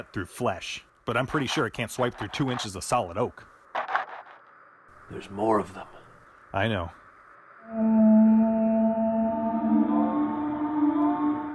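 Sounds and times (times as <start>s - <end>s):
speech: 0.0s - 3.5s, 5.1s - 7.0s, 7.7s - 8.4s
eerie whale-like moan: 7.6s - 11.5s.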